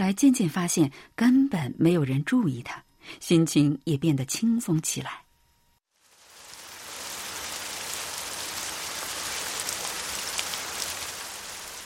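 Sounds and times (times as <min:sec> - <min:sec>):
speech: 0:00.0 - 0:05.2
rain falling: 0:05.9 - 0:11.8.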